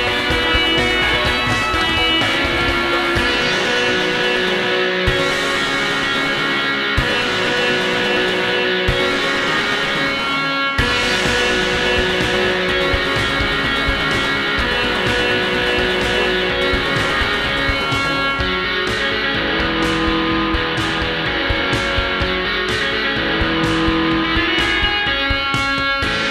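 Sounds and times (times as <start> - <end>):
slow guitar playing: 0.0 - 26.2.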